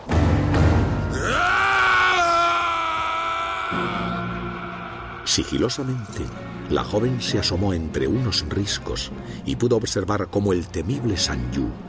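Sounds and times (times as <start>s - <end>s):
distant scream: 1.1s - 6.1s
speech: 5.4s - 11.8s.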